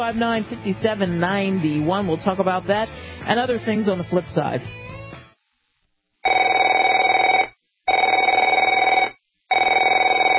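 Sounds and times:
speech: 0.0 - 4.8
telephone ringing: 6.2 - 10.3.

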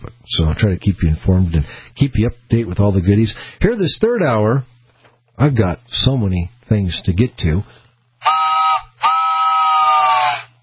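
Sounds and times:
speech: 0.3 - 4.7, 5.4 - 8.3
locomotive train whistle blasts: 8.2 - 10.6.

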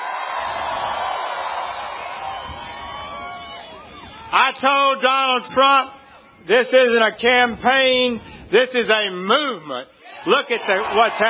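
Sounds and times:
large crowd cheering at a rally: 0.0 - 7.1, 10.0 - 11.2
speech: 4.3 - 11.2.

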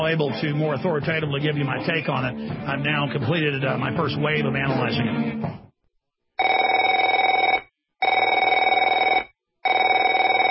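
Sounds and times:
speech: 0.0 - 5.7
telephone ringing: 6.4 - 10.4.

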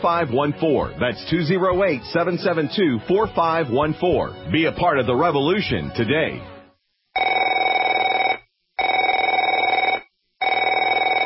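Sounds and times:
speech: 0.0 - 6.5
telephone ringing: 7.2 - 11.2.

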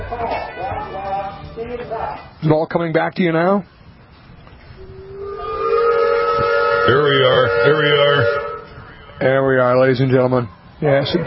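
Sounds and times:
speech: 1.9 - 3.8, 6.9 - 8.4, 9.2 - 11.2
steam whistle blowing to kick off a parade: 4.8 - 9.1.

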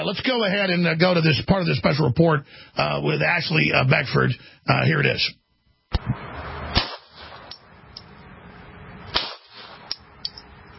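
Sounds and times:
speech: 0.0 - 6.2
gunshots from a Glock pistol: 6.7 - 7.6, 9.1 - 10.0.

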